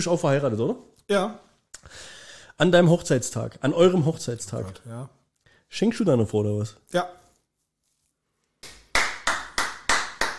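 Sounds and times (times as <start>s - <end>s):
speech: 0.0s - 7.2s
hand clapping in the room: 8.6s - 10.3s.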